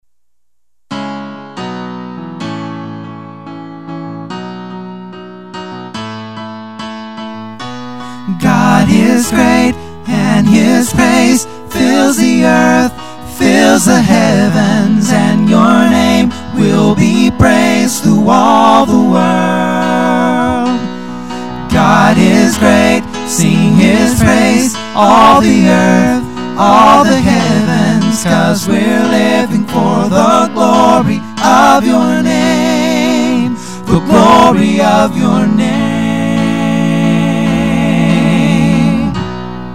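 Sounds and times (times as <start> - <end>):
three-part vocal chorus: 8.0 - 39.5.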